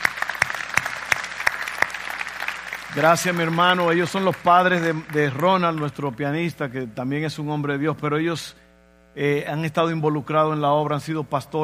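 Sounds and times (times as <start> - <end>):
audience clapping: 0.0 - 6.2
speech: 3.0 - 8.6, 9.2 - 11.6.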